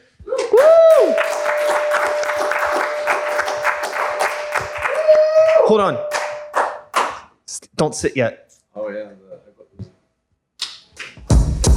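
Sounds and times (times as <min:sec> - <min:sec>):
rising whoop: 0:00.3 - 0:06.7
long sustained high cheer or whistle: 0:00.4 - 0:06.8
crowd applause: 0:00.9 - 0:07.2
speech: 0:05.7 - 0:06.1, 0:07.8 - 0:08.9.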